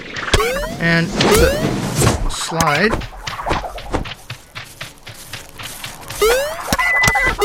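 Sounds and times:
video game beep for lightning power: 0.3s - 1.9s, 6.1s - 7.4s
speech: 0.8s - 2.0s, 2.5s - 3.1s.

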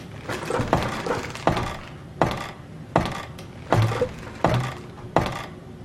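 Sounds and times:
key jiggling: 0.0s - 5.5s.

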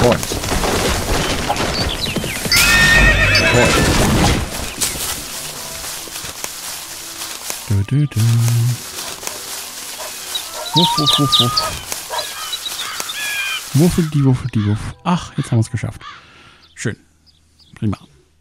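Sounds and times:
hooves clip-clopping: 0.0s - 14.2s
horse whinnying: 2.5s - 4.4s
speech: 7.9s - 9.0s, 10.8s - 11.8s, 13.8s - 16.2s, 16.8s - 17.1s, 17.8s - 18.1s.

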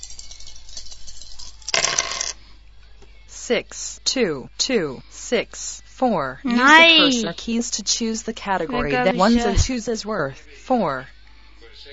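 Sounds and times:
dice rattling sound effect in a computer dice game: 0.0s - 2.4s
speech: 3.5s - 11.2s.

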